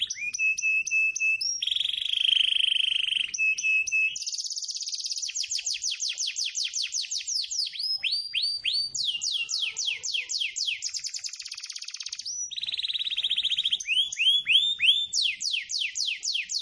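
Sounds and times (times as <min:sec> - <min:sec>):
canary singing whistled tones, metallic chiming notes and trills: 0:00.0 - 0:16.6.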